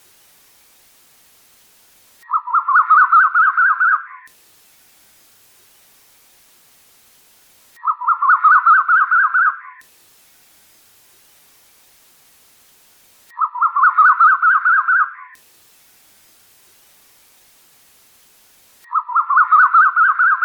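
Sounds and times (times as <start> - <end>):
bird chattering song: 2.2 - 4.3, 7.8 - 9.8, 13.3 - 15.4, 18.9 - 20.4.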